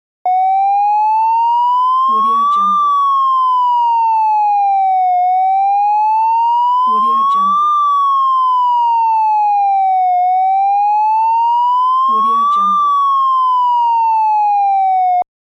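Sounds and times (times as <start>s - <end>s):
police siren: 0.3s - 15.3s.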